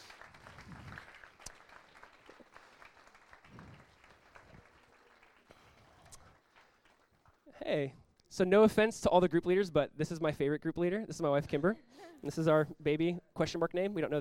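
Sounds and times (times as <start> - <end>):
audience applauding group leaders: 0.0 - 7.5
speech: 7.6 - 14.1.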